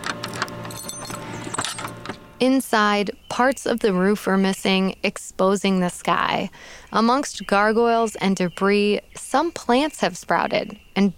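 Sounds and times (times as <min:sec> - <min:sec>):
bunch of keys unlocking a warehouse door lock: 0:00.0 - 0:02.2
speech: 0:02.4 - 0:11.1.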